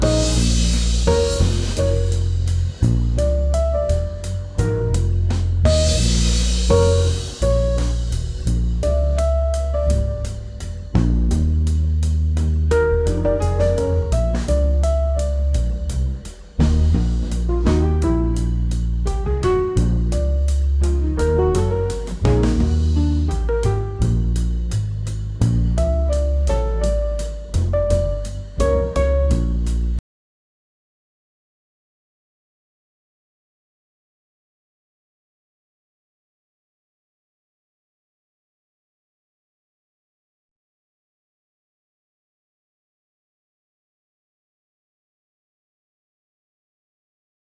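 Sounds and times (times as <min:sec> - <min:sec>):
jazz in A# major: 0:00.0 - 0:30.0.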